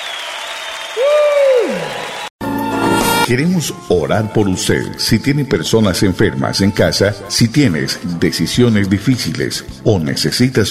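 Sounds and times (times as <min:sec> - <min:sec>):
audience clapping: 0:00.0 - 0:02.3
speech: 0:03.3 - 0:10.7.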